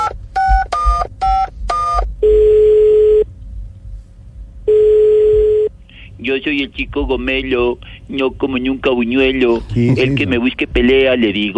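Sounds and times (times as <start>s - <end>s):
long steady low telephone ringback tones: 1.3s - 3.2s, 4.7s - 5.7s
speech: 6.3s - 11.5s.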